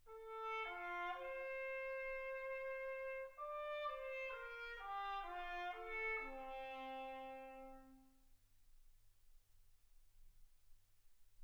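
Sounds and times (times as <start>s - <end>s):
trumpet: 0.0s - 8.2s.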